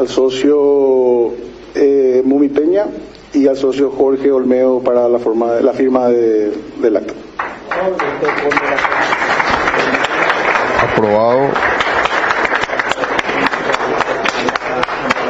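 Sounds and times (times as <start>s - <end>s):
speech: 0.0s - 0.9s, 2.3s - 7.2s, 7.8s - 9.1s, 11.0s - 11.8s
applause from club members: 7.3s - 15.2s.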